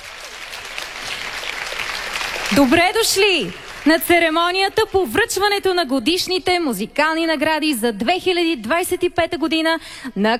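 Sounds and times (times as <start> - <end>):
audience applauding the children's radio choir at a music awards ceremony: 0.0 - 4.6
speech: 2.5 - 10.3.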